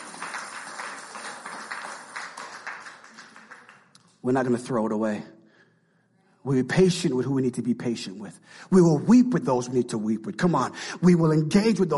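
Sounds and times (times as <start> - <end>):
audience clapping hands: 0.0 - 4.3
speech: 4.2 - 5.4, 6.4 - 11.9.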